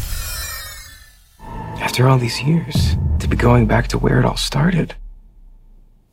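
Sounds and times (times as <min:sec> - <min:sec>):
jingle: 0:01.4 - 0:04.9.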